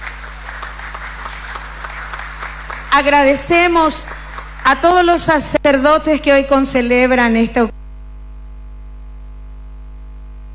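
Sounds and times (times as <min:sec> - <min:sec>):
audience applause: 0:00.0 - 0:05.3
speech: 0:03.0 - 0:07.8.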